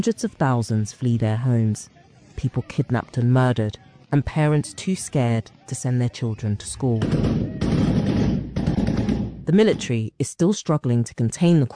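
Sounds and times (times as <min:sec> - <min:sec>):
speech: 0:00.0 - 0:07.4, 0:09.5 - 0:11.7
rapid burst of gunshots: 0:07.0 - 0:10.0.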